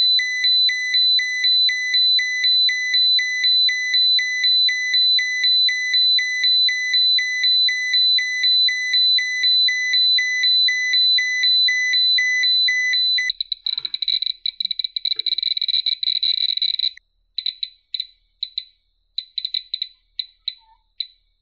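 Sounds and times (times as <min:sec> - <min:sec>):
Geiger counter: 0:00.0 - 0:21.2.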